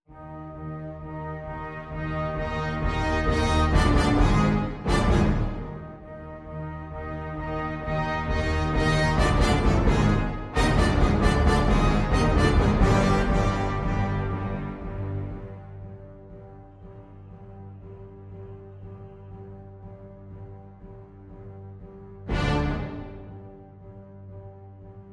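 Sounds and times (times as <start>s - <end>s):
orchestral accompaniment: 0.1s - 16.5s, 22.2s - 25.1s.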